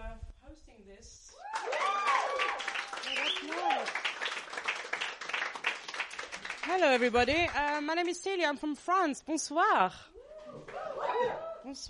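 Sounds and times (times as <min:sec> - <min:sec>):
speech: 0:00.8 - 0:01.5, 0:06.7 - 0:10.1, 0:11.2 - 0:11.8
audience applause: 0:01.5 - 0:07.8.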